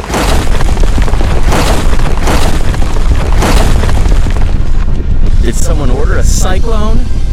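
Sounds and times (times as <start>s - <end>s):
giant turtle stomps shaking the ground: 0.0s - 5.2s
speech: 5.6s - 7.2s.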